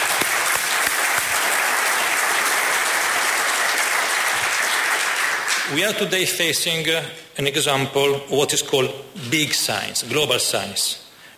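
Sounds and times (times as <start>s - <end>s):
crowd clapping: 0.0s - 6.1s
speech: 5.7s - 11.3s.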